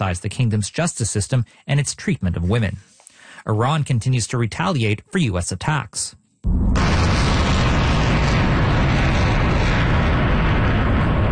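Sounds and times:
speech: 0:00.0 - 0:06.9
rocket roar of missiles launched by Iran's Islamic Revolutionary Guard: 0:06.4 - 0:11.2.

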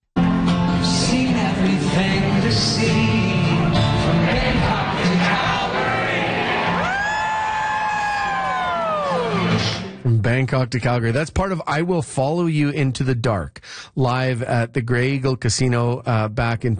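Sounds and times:
large concert crowd singing along loudly in unison: 0:01.0 - 0:07.0
concert crowd sustained rising cheer: 0:03.8 - 0:10.0
speech: 0:10.3 - 0:16.7.

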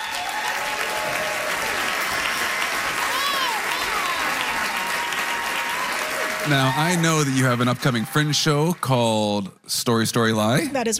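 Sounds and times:
audience applause for a guest storyteller and comedian: 0:00.0 - 0:10.0
speech: 0:06.5 - 0:10.9.

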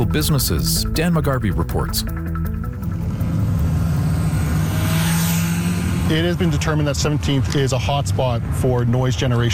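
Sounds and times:
speech: 0:00.0 - 0:02.4, 0:06.1 - 0:09.5
modified car engine revving loudly: 0:03.0 - 0:08.9.

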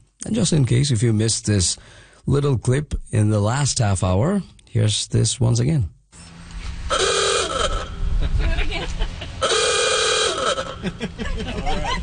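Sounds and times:
speech: 0:00.2 - 0:06.0
horn of a 1928 Ford Model A parked outside in Happy Valley-Goose Bay: 0:06.9 - 0:08.0, 0:09.4 - 0:10.8
laughter: 0:08.2 - 0:09.4, 0:10.6 - 0:12.0.

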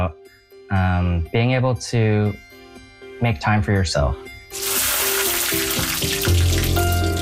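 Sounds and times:
speech: 0:00.0 - 0:02.4, 0:03.2 - 0:04.9
music: 0:00.0 - 0:07.2
butter melting and sizzling in a piping hot pan: 0:04.6 - 0:07.2.

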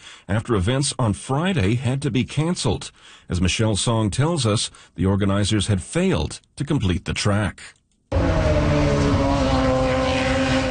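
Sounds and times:
speech: 0:00.3 - 0:09.0
IndyCar race car engines roaring on a temporary street circuit in Markham, Ontario: 0:08.1 - 0:10.6.

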